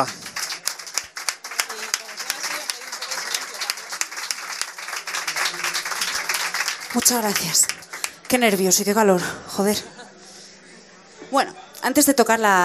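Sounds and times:
speech: 0:00.0 - 0:00.2, 0:06.9 - 0:10.0, 0:11.3 - 0:12.6
audience applause: 0:00.0 - 0:08.8
faint crowd voices: 0:00.0 - 0:12.6.

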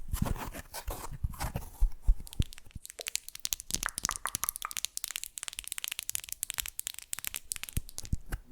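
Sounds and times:
soft low rustling and scraping: 0:00.0 - 0:02.3
sharp bright taps and crinkly clicks: 0:02.1 - 0:08.4.

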